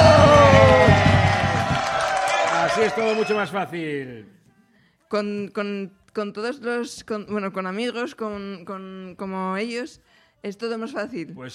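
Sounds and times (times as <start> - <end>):
whooping voice: 0.0 - 3.6
audience cheering and applauding for female radio presenters: 0.0 - 3.7
speech: 2.8 - 4.4, 5.1 - 11.5.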